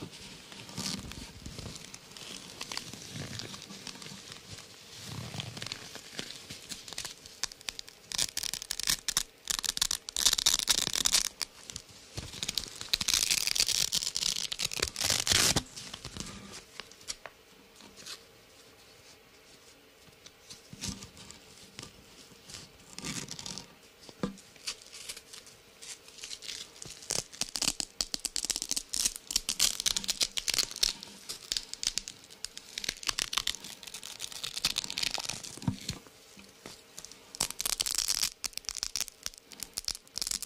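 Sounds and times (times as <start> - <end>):
velcro being pulled apart: 0.7 - 4.4, 5.1 - 16.3, 22.9 - 23.6, 24.6 - 35.6, 37.0 - 40.4.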